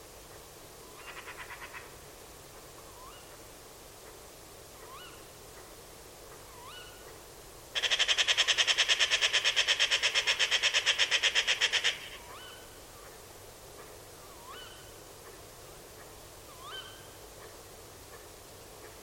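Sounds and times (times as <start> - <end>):
bird harsh nasal calls: 7.8 - 12.6.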